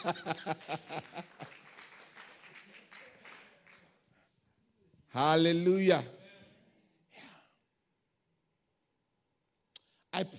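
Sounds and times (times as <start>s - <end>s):
speech: 0.0s - 1.5s, 5.2s - 6.2s, 10.2s - 10.3s
laughter and voices: 0.0s - 1.6s
audience applauding: 0.0s - 4.0s.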